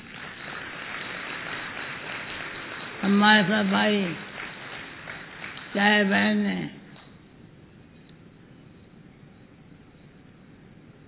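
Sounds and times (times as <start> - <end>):
audience clapping: 0.0 - 7.1
speech: 3.0 - 4.3, 5.7 - 6.8.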